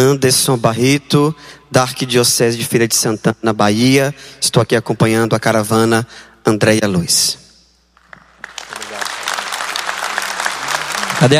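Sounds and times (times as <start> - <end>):
speech: 0.0 - 7.4, 11.2 - 11.3
audience applauding: 8.0 - 11.3.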